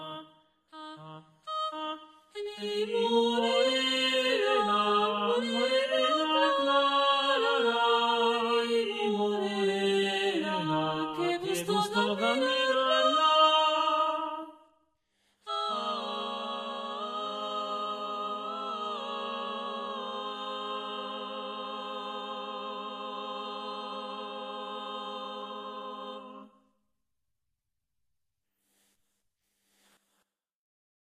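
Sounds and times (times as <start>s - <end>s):
four voices singing: 0.9s - 14.5s, 15.5s - 26.6s.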